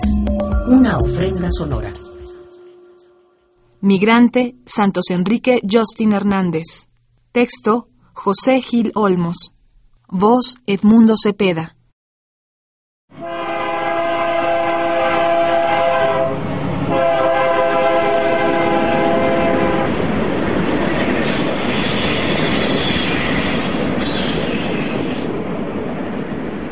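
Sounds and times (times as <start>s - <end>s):
speech: 0.7s - 2.0s, 3.8s - 11.8s
freight train rolling north from Arriaga, Chiapas: 13.2s - 26.7s.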